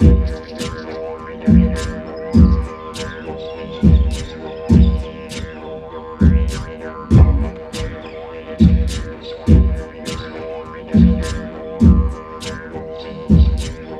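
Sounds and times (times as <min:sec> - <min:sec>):
live didgeridoo playing: 0:00.0 - 0:13.9
morning ambience: 0:00.0 - 0:13.9.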